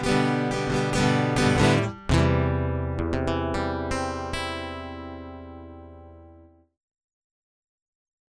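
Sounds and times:
guitar loop: 0:00.0 - 0:06.6.

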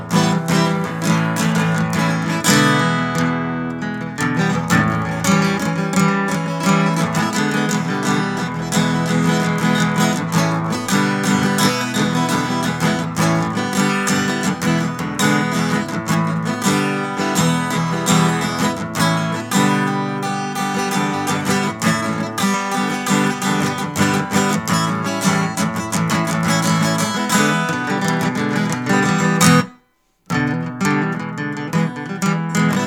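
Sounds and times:
dance guitar instrumental: 0:00.0 - 0:32.8.

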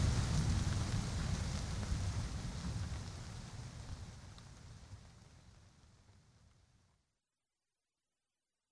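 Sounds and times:
rainstorm: 0:00.0 - 0:07.0.

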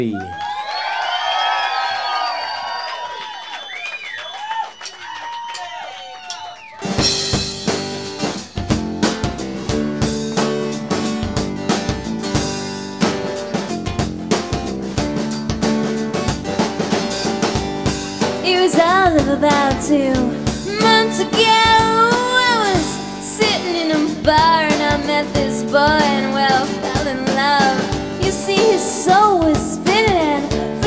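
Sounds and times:
speech: 0:00.0 - 0:00.4, 0:19.3 - 0:20.4
crowd cheering and whooping: 0:00.0 - 0:07.3
music with a steady beat: 0:06.8 - 0:30.8.

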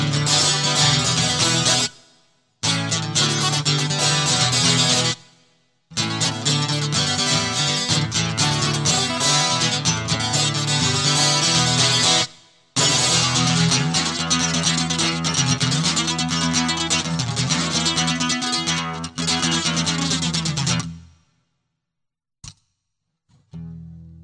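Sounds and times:
high speed guitar loop: 0:00.0 - 0:02.0, 0:02.6 - 0:05.2, 0:05.9 - 0:21.0.

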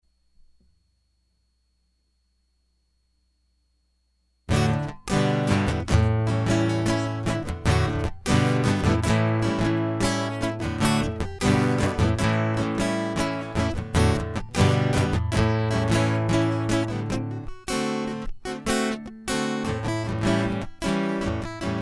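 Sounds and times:
guitar loop: 0:04.5 - 0:21.8.

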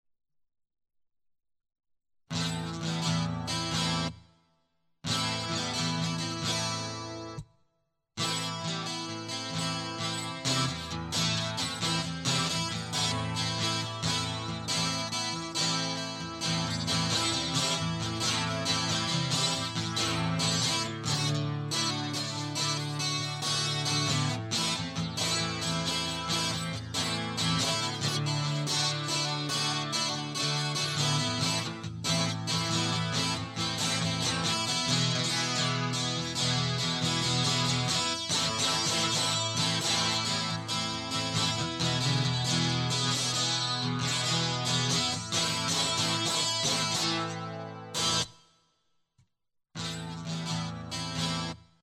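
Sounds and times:
guitar loop: 0:02.3 - 0:04.2, 0:05.0 - 0:07.4, 0:08.2 - 0:48.3, 0:49.8 - 0:51.6.

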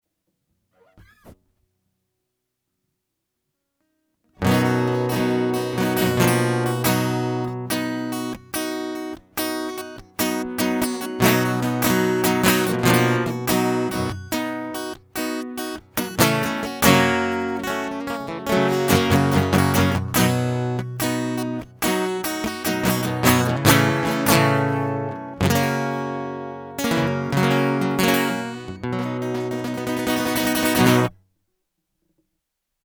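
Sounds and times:
prelude music: 0:04.4 - 0:31.1.

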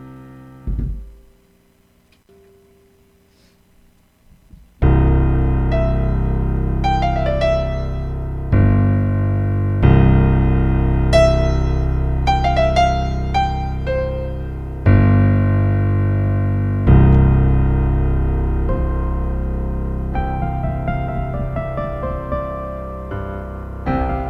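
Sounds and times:
piano warmup: 0:00.0 - 0:01.5, 0:04.8 - 0:24.2.

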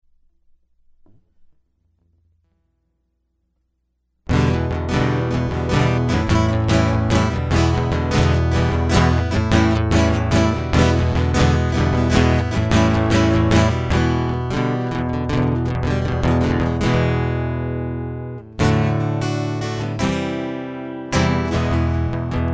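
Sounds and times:
guitar loop: 0:04.3 - 0:22.5.

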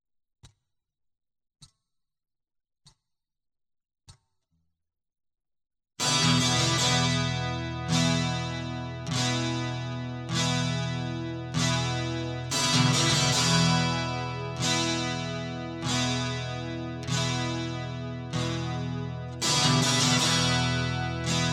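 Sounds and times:
guitar loop: 0:06.0 - 0:21.5.

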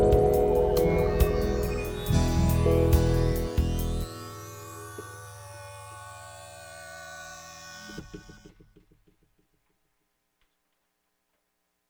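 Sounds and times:
instrumental music: 0:00.0 - 0:08.0.

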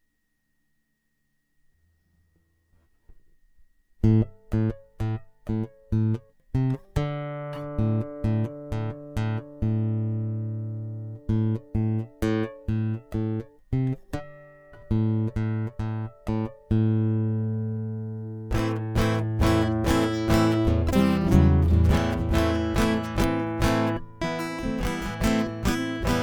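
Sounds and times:
guitar loop: 0:04.0 - 0:26.2.

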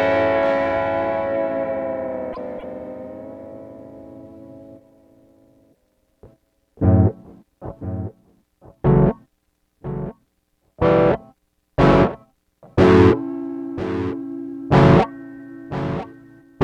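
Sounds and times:
strange electric guitar song: 0:00.0 - 0:09.2, 0:09.8 - 0:10.1, 0:10.8 - 0:16.6.

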